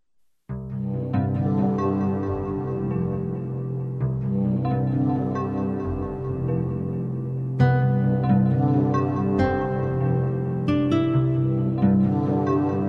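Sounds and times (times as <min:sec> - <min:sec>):
ambient music: 0:00.5 - 0:12.8.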